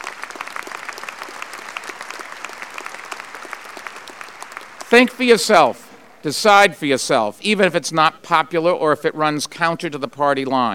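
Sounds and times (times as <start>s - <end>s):
audience applauding: 0.0s - 5.8s
speech: 4.9s - 10.7s.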